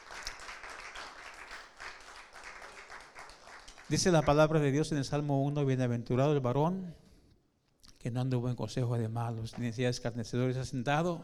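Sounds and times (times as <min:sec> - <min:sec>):
audience applauding: 0:00.0 - 0:04.2
speech: 0:03.9 - 0:07.0, 0:08.0 - 0:11.2.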